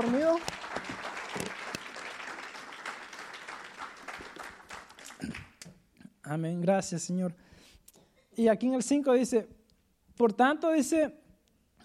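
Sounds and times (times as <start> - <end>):
applause: 0.0 - 5.6
speech: 6.3 - 7.5, 8.4 - 9.6, 10.2 - 11.2.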